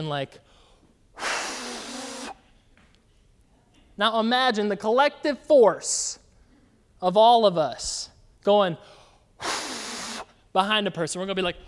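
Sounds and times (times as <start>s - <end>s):
speech: 0.0s - 0.6s, 4.0s - 6.2s, 7.0s - 9.6s, 10.6s - 11.6s
person imitating breathing with a rushing exhale: 1.2s - 2.4s, 9.4s - 10.4s.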